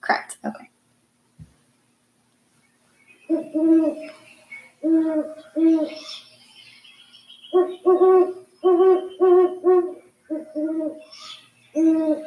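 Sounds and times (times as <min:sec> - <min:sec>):
faint higher sounds: 0:02.6 - 0:12.2
Great Horned Owl hoots: 0:03.3 - 0:06.2, 0:07.4 - 0:12.2.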